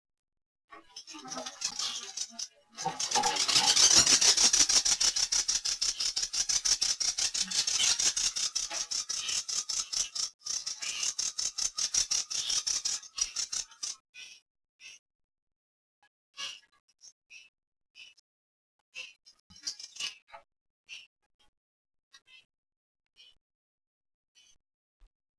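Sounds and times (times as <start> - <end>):
female loris chittering at high intensity: 1.0 - 14.0.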